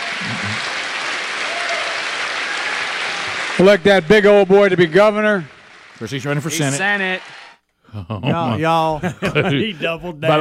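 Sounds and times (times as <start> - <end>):
crowd clapping: 0.0 - 7.6
speech: 3.6 - 10.3
laughter: 7.9 - 10.3.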